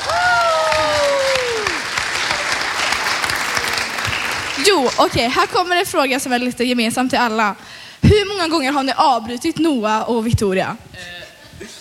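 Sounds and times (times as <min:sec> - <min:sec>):
audience applause: 0:00.0 - 0:05.8
speech: 0:04.9 - 0:11.7.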